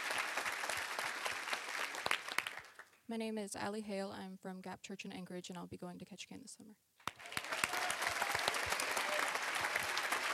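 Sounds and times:
audience applause: 0.0s - 2.9s, 7.0s - 10.3s
speech: 3.1s - 6.9s.

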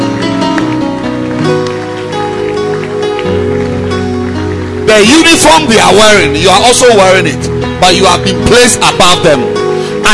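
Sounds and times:
audience clapping hands: 0.0s - 9.4s
speech: 4.9s - 10.1s.

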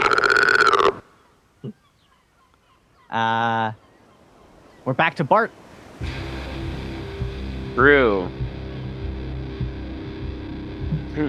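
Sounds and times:
voice imitating a loud croak: 0.0s - 1.8s
speech: 3.1s - 3.8s, 4.8s - 6.2s, 7.8s - 8.4s.

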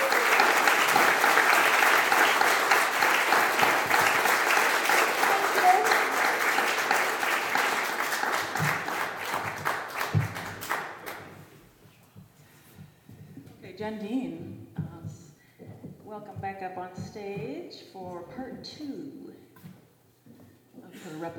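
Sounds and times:
audience applause: 0.0s - 11.5s.

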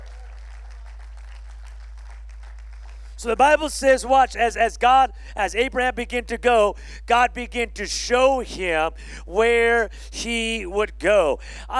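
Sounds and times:
audience clapping: 0.0s - 3.5s
speech: 3.2s - 11.7s.

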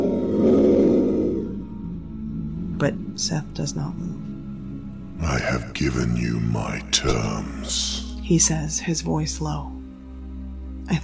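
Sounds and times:
creature roaring: 0.0s - 1.6s
speech: 2.8s - 4.3s, 5.2s - 9.8s, 10.9s - 11.0s.

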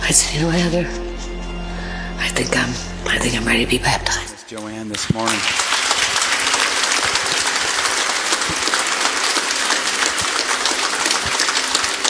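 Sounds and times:
speech: 0.1s - 1.2s, 2.3s - 5.7s
family clapping at a church baptism: 4.5s - 12.0s.

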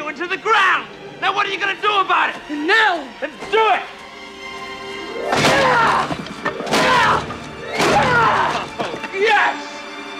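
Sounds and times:
speech: 0.2s - 4.0s
fists pounding a wooden training dummy: 5.3s - 8.9s.

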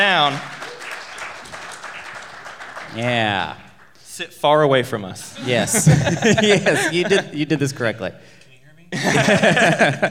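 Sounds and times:
speech: 0.0s - 0.5s, 2.9s - 3.6s, 4.2s - 10.0s
audience applause: 0.0s - 4.0s
laughter: 5.2s - 7.8s, 8.9s - 10.0s.

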